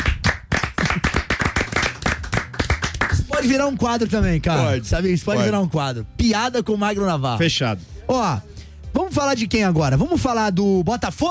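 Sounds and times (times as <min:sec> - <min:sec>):
round of applause: 0:00.0 - 0:03.6
speech: 0:03.4 - 0:11.2.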